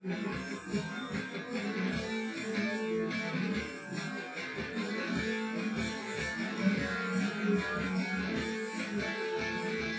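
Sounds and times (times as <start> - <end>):
drums: 0.0 - 9.9.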